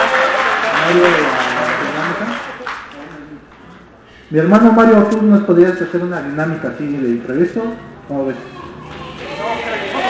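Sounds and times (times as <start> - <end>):
audience applause: 0.0 - 3.2, 8.6 - 10.0
speech: 0.9 - 1.4, 4.3 - 8.6.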